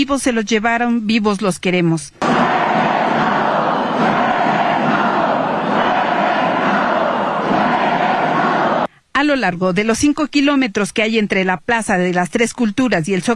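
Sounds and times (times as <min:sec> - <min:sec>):
speech: 0:00.0 - 0:02.5, 0:09.2 - 0:13.3
large marching crowd chanting slogans: 0:02.2 - 0:08.9.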